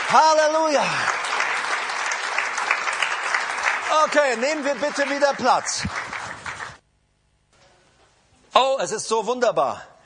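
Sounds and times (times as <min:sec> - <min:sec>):
church congregation applauding: 0:00.0 - 0:06.8
speech: 0:00.1 - 0:01.2, 0:03.9 - 0:06.0, 0:08.5 - 0:09.9.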